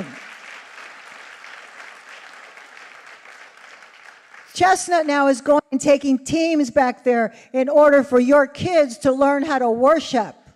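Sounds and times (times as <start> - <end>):
audience clapping: 0.0 - 5.1
speech: 4.6 - 10.4.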